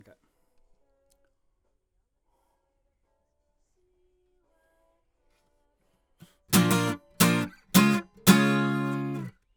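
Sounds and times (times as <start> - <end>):
acoustic guitar comping: 6.6 - 9.3.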